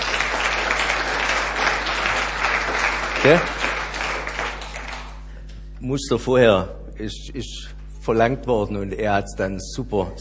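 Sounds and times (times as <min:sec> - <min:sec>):
audience applause for the last drummer at an association event: 0:00.0 - 0:05.3
speech: 0:03.2 - 0:03.6, 0:05.8 - 0:10.1.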